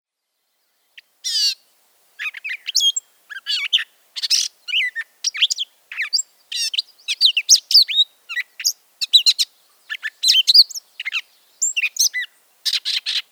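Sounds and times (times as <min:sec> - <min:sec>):
Gray catbird giving nasal cat-like mews: 0:01.2 - 0:01.6, 0:02.2 - 0:13.2.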